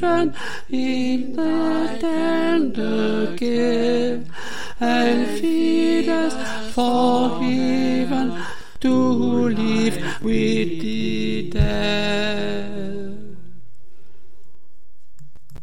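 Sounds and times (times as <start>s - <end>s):
tenor singing a chorale: 0.0s - 13.6s.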